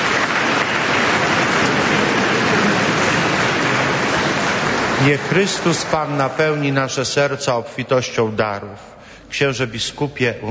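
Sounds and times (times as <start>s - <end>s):
audience applause: 0.0s - 6.9s
speech: 5.0s - 10.4s.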